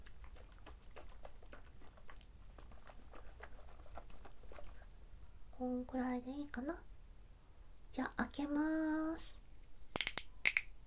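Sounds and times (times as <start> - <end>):
drink container shaken before being opened: 0.0 - 4.9
speech: 5.8 - 6.9, 8.0 - 9.4.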